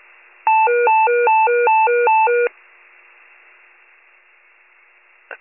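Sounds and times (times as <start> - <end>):
fire pager alert: 0.5 - 2.5.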